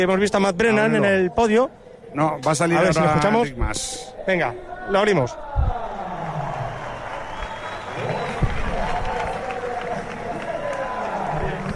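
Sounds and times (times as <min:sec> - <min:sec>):
speech: 0:00.0 - 0:05.4
crowd ovation as rider reaches podium: 0:05.6 - 0:11.7.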